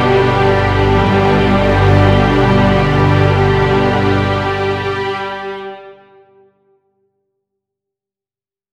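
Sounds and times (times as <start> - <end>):
bagpipe melody: 0.0 - 6.5.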